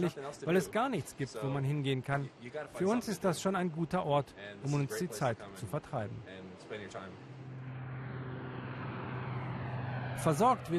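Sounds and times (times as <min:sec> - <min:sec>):
speech: 0:00.0 - 0:07.4, 0:10.2 - 0:10.7
transport aircraft engines at Thule Arctic air base in Greenland: 0:06.3 - 0:10.7
low hum: 0:07.2 - 0:10.7.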